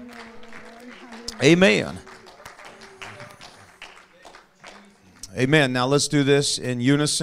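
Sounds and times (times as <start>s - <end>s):
audience clapping: 0.0s - 5.8s
speech: 1.4s - 2.1s, 5.4s - 7.2s.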